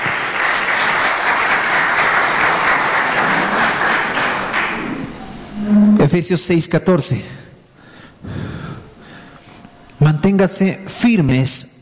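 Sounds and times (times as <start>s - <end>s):
audience applause: 0.0s - 5.4s
speech: 6.1s - 7.4s, 10.4s - 11.7s.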